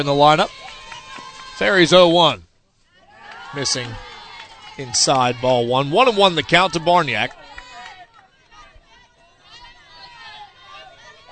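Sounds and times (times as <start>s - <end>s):
speech: 0.0s - 0.7s, 1.6s - 2.5s, 3.5s - 4.1s, 4.8s - 7.5s
crowd shouts: 0.0s - 2.3s, 2.9s - 11.2s
ballpark crowd murmur at a baseball game: 2.8s - 11.2s.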